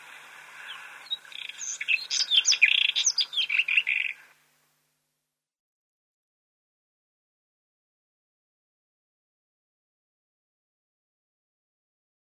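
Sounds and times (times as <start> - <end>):
White-throated robin song with scratchy phrase and chattering warble: 0.0 - 4.4.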